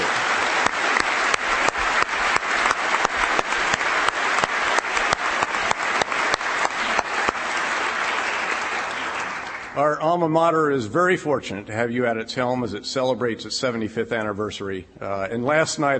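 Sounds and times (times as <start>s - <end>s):
audience applause: 0.0s - 9.8s
speech: 10.0s - 15.9s.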